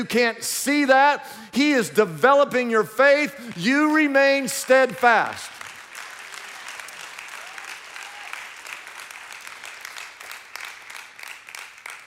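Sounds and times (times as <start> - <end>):
speech: 0.0 - 5.6
audience clapping: 3.4 - 12.0.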